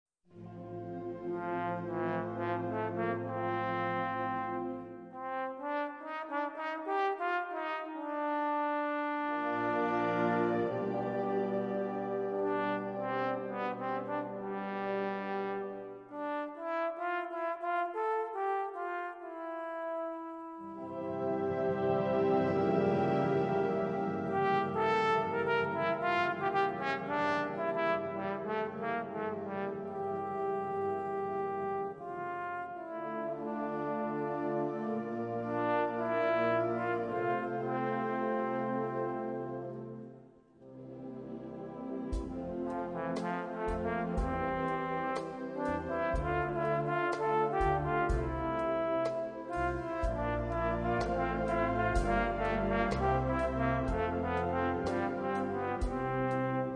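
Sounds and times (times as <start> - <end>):
trombone choral piece: 0.4 - 56.7.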